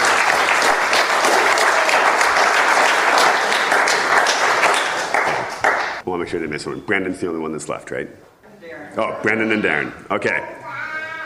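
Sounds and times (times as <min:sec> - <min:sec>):
audience applause: 0:00.0 - 0:06.0
speech: 0:06.2 - 0:08.3, 0:09.0 - 0:10.6.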